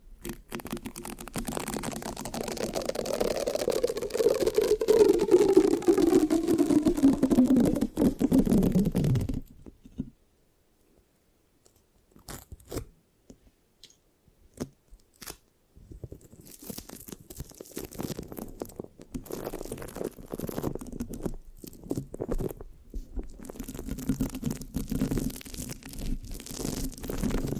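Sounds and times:
microphone scratching: 0.0 - 10.2, 15.9 - 27.5
low tone sliding downward: 3.0 - 9.4.

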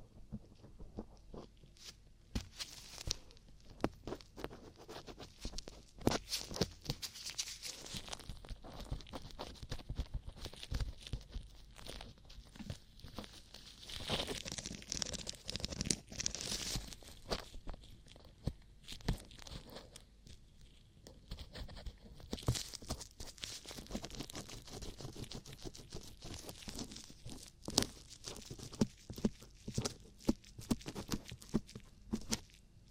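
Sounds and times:
ear cleaning crackly rustling and scratching: 0.0 - 32.8
sharp clicks and crunches: 2.4 - 32.6.

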